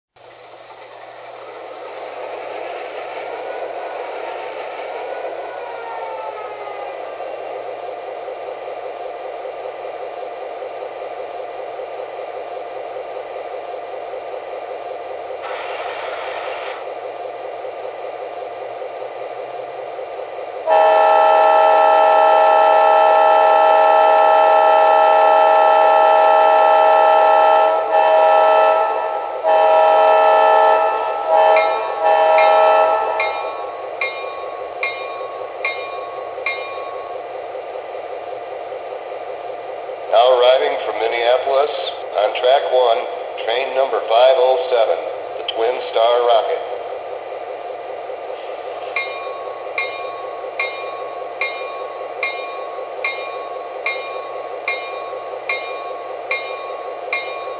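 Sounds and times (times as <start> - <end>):
trains: 0.1 - 57.5.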